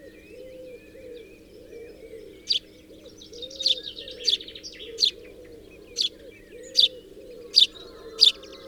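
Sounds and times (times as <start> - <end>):
house sparrow Passer domesticus chirping and chattering: 2.0 - 8.6.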